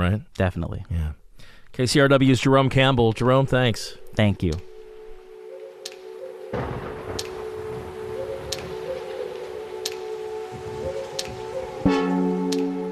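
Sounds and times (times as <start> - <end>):
speech: 0.0 - 4.7, 6.5 - 6.8
tonal hum: 4.0 - 12.9
rain falling: 5.8 - 12.9
rumble of thunder: 6.5 - 9.5
faint ticks: 8.4 - 8.8, 9.8 - 10.1.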